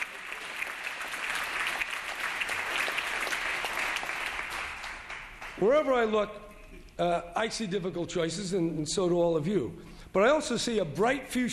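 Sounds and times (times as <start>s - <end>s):
audience applause: 0.0s - 5.6s
speech: 5.6s - 11.5s.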